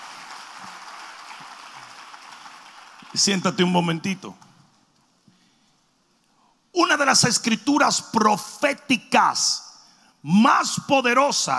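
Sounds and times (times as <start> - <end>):
audience applause: 0.0 - 3.3
speech: 3.1 - 4.4, 7.1 - 9.6, 10.2 - 11.5.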